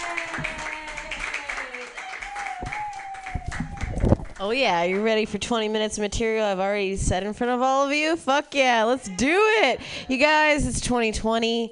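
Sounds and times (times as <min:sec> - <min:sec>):
audience clapping: 0:00.0 - 0:05.3
speech: 0:04.4 - 0:11.6.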